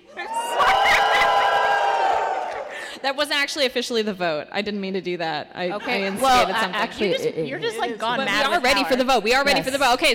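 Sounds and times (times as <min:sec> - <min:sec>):
live crowd cheering: 0:00.0 - 0:03.0
speech: 0:03.0 - 0:10.1.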